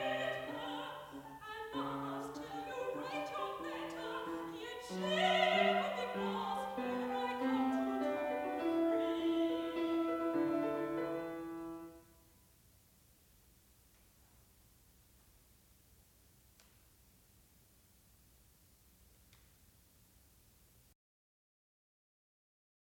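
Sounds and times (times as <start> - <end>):
English songs: 0.0 - 12.0.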